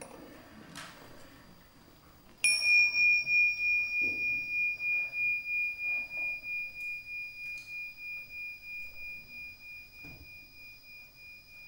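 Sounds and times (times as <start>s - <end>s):
meditation bell ringing: 2.4s - 11.6s.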